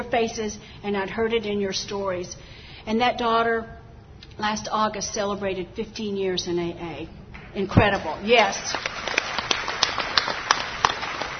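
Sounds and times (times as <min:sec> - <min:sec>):
speech: 0:00.1 - 0:03.8, 0:04.4 - 0:09.0
audience applause: 0:08.7 - 0:11.3.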